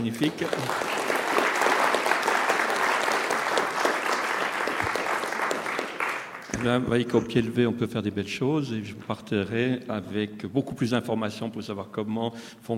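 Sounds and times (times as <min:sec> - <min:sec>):
speech: 0:00.0 - 0:01.0, 0:06.6 - 0:12.7
audience applause: 0:00.0 - 0:06.8.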